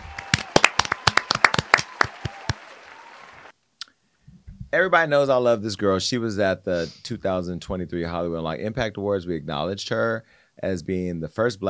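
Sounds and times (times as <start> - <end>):
hand claps from a small group: 0.0 - 3.5
speech: 4.7 - 11.6.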